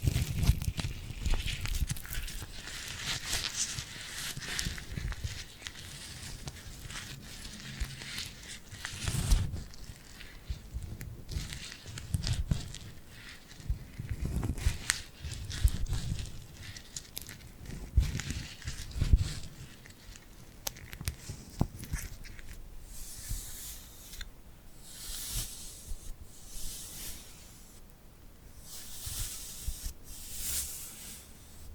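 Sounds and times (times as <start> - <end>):
glued hands rubbing and peeling: 0.0 - 27.8, 28.6 - 31.7.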